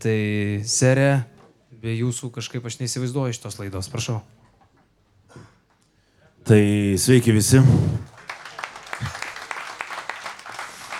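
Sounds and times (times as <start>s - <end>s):
speech: 0.0s - 4.5s, 6.4s - 8.1s
scattered audience applause at a live show: 8.0s - 10.9s.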